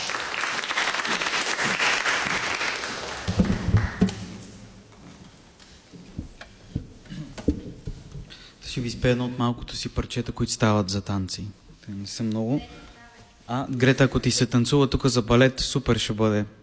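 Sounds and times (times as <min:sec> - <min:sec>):
applause: 0:00.0 - 0:04.2
speech: 0:08.8 - 0:12.8, 0:13.5 - 0:16.6.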